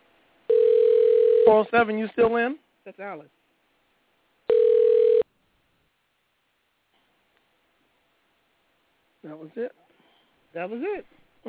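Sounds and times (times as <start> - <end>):
telephone dial tone: 0.5 - 1.5, 4.5 - 5.2
speech: 1.5 - 3.4, 9.2 - 9.8, 10.5 - 11.4
telephone dialing: 4.5 - 5.2.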